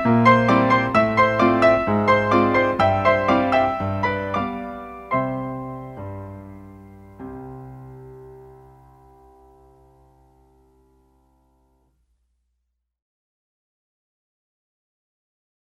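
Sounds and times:
ragtime piano roll: 0:00.0 - 0:10.8.

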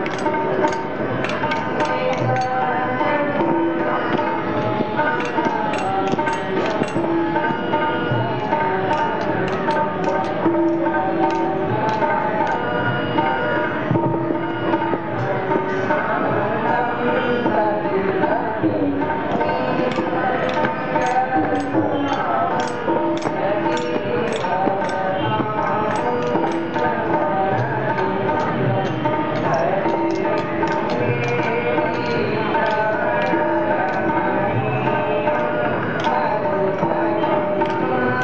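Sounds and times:
temple song in Laxman Jhula Rishikesh: 0:00.0 - 0:38.2.

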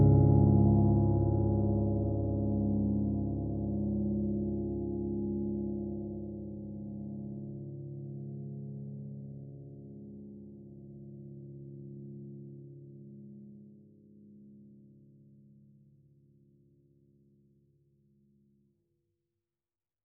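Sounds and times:
dark slow sad piano: 0:00.0 - 0:09.1.

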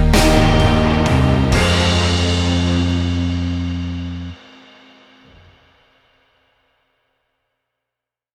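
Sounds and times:
instrumental melody: 0:00.0 - 0:05.8.

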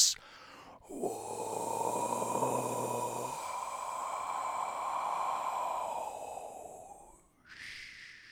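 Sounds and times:
person breathing out: 0:00.2 - 0:08.2.

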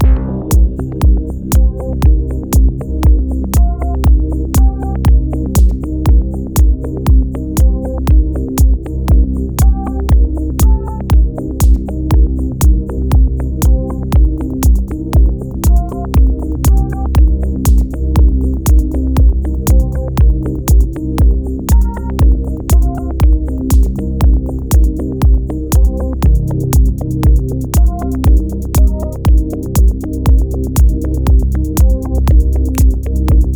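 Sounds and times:
dark deep minimal dance music: 0:00.0 - 0:33.5.

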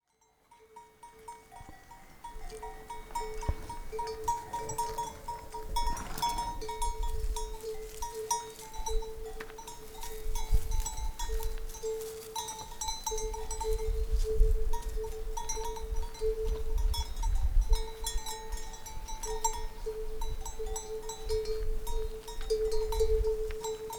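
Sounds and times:
pony herd hoofbeats in Timang, Nepal: 0:00.8 - 0:23.9.

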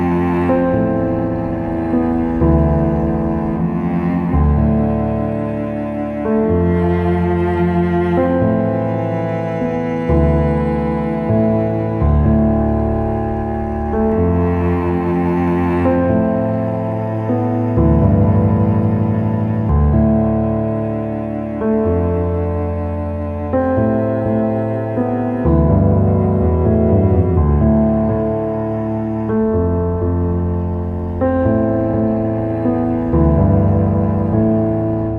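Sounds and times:
calm gentle sad emotive cello: 0:00.0 - 0:35.1
calm gentle sad emotive piano: 0:00.0 - 0:35.1.

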